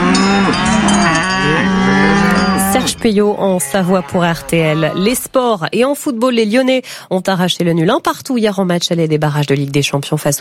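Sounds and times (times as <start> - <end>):
cows mooing: 0.0 - 5.4
speech: 2.8 - 10.4.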